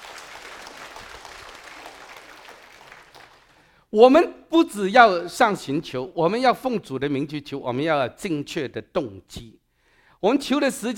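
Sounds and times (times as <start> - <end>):
audience applauding: 0.0 - 3.7
speech: 3.9 - 9.6, 10.2 - 10.9.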